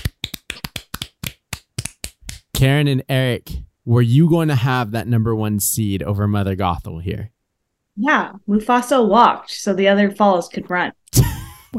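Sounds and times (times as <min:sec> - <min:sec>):
people clapping hands: 0:00.0 - 0:02.6
speech: 0:02.6 - 0:07.4, 0:08.0 - 0:11.7.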